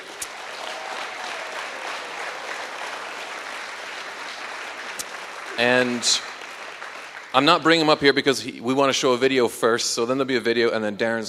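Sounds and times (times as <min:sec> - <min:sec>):
round of applause: 0:00.0 - 0:08.4
speech: 0:05.6 - 0:06.3, 0:07.3 - 0:11.2.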